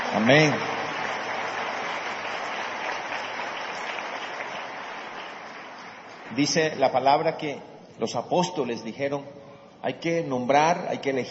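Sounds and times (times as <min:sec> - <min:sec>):
audience applause: 0:00.0 - 0:06.4
speech: 0:00.2 - 0:00.7, 0:06.4 - 0:11.2.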